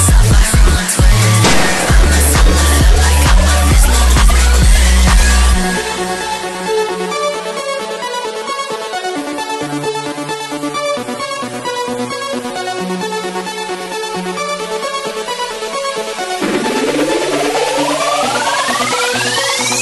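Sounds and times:
slowed daycore music: 0:00.2 - 0:19.7.

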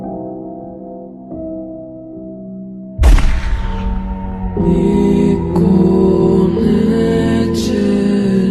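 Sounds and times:
slowed reverb music: 0:03.0 - 0:08.4.

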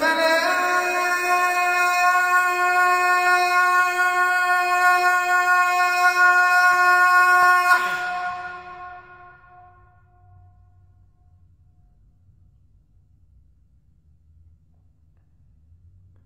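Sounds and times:
Azan call to prayer: 0:00.0 - 0:10.0.

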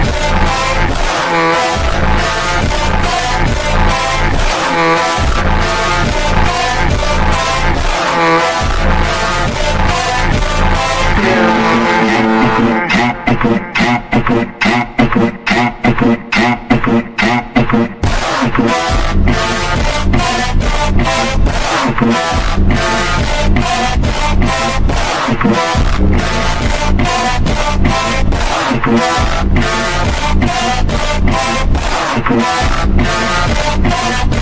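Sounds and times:
deep voices with reverb, ultra slowed: 0:00.0 - 0:34.4
beeper sound in slowed funk montagem: 0:11.2 - 0:13.0.

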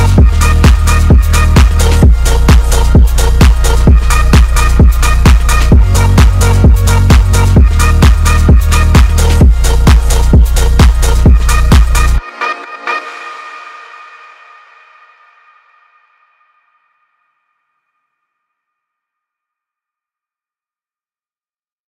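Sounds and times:
car music remix: 0:00.0 - 0:16.2.

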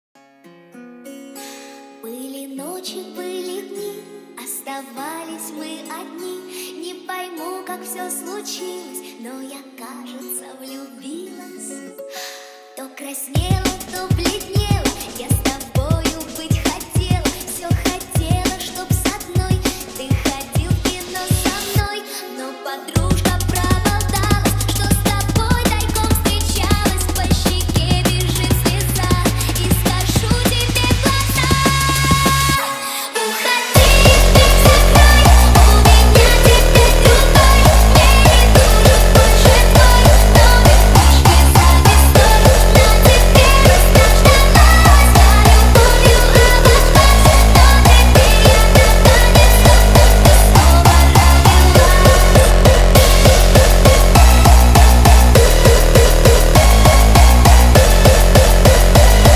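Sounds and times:
hardstyle remix: 0:13.4 - 0:59.3.

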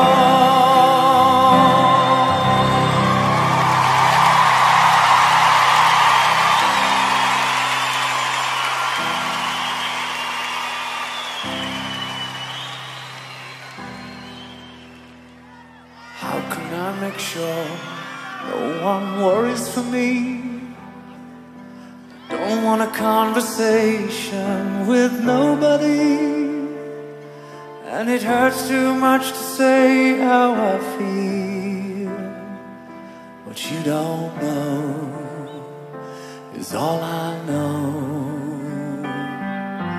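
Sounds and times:
person singing lyrics: 0:00.0 - 0:04.1, 0:15.9 - 0:21.2, 0:22.0 - 0:32.7, 0:33.4 - 0:39.9
piano medley: 0:00.0 - 0:39.9.

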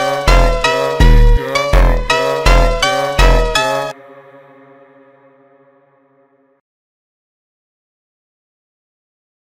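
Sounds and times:
slowed funk music: 0:00.0 - 0:06.0.

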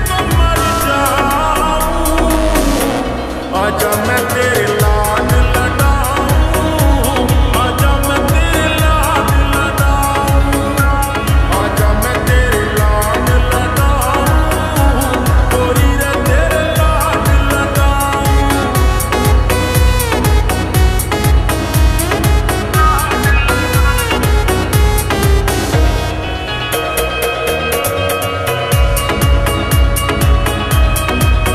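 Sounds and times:
Haryanvi song slowed with reverb: 0:00.0 - 0:31.5.

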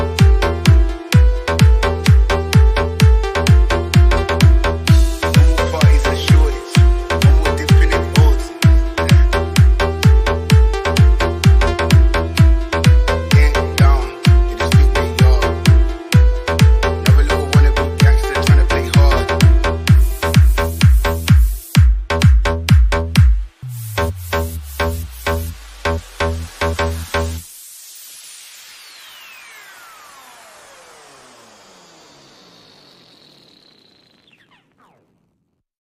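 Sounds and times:
music: 0:00.0 - 0:27.4.

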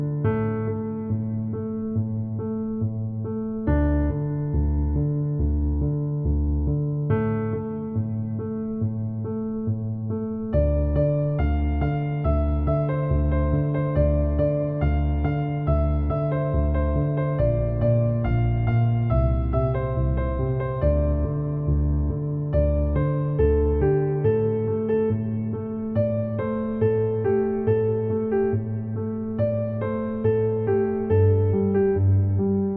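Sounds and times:
easy piano piece: 0:00.0 - 0:32.7.

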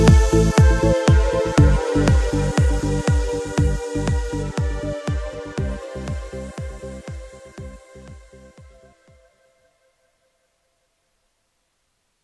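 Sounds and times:
deep house instrumental remix of Turkish music: 0:00.0 - 0:09.4.

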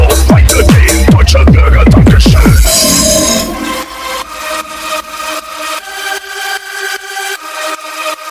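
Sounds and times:
boosted bass: 0:00.0 - 0:05.9.

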